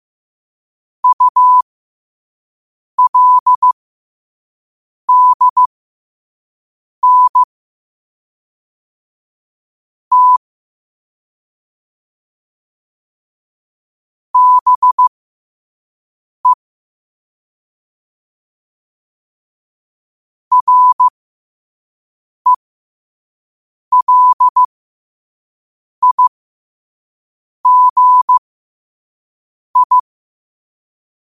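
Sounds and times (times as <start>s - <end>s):
morse code at 5 wpm: 1.0s - 1.6s, 3.0s - 3.8s, 5.1s - 5.7s, 7.0s - 7.5s, 10.1s - 10.4s, 14.4s - 15.1s, 20.5s - 21.1s, 23.9s - 24.7s, 26.0s - 26.3s, 27.7s - 28.4s, 29.8s - 30.0s.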